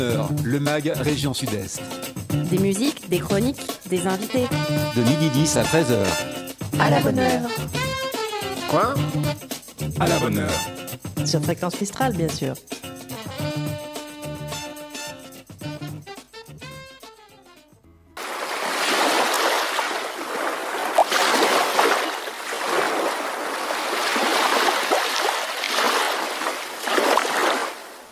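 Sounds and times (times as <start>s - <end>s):
speech: 0.0s - 7.8s, 8.7s - 12.8s
music: 0.0s - 18.2s
sea waves washing and surging: 18.2s - 28.1s.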